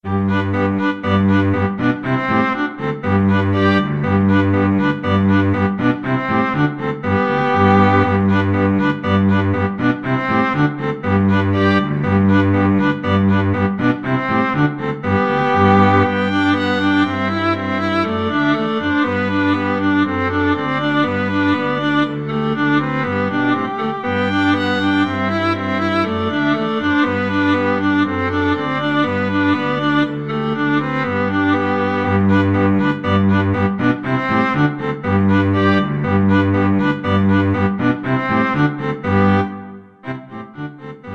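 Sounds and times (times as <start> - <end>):
string trio playing an ecossaise: 0.0 - 41.1.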